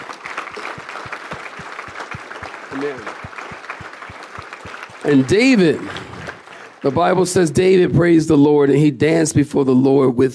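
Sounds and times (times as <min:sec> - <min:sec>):
audience clapping in time: 0:00.0 - 0:08.2
speech: 0:02.8 - 0:03.3, 0:05.0 - 0:06.1, 0:06.8 - 0:10.3.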